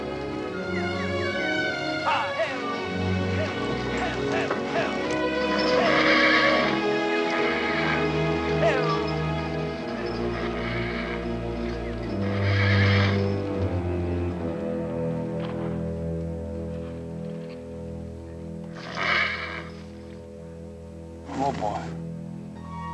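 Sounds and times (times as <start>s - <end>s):
sustained orchestral music: 0.0s - 22.9s
spooked horse whinnying: 2.0s - 13.5s, 18.7s - 19.9s.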